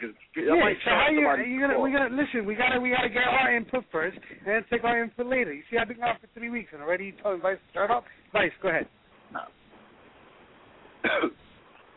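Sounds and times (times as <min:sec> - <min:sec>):
speech: 0:00.0 - 0:09.6, 0:11.0 - 0:11.4
man clearing his throat: 0:11.0 - 0:11.4.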